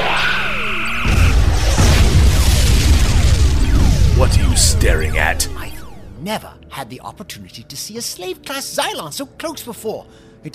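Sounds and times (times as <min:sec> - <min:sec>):
sci-fi phaser weapons firing in a space battle: 0:00.0 - 0:06.2
loud dense booming blasts: 0:00.5 - 0:06.2
speech: 0:06.2 - 0:10.5.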